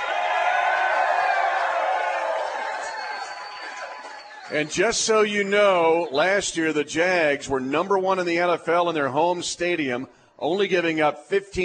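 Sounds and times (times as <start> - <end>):
oversold crowd roaring and cheering: 0.0 - 5.2
speech: 4.5 - 11.6.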